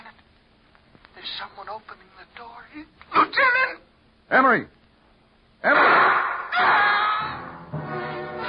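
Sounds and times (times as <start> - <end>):
speech: 1.3 - 4.8, 5.6 - 6.1
gunshot: 5.7 - 6.8
person screaming: 6.5 - 7.4.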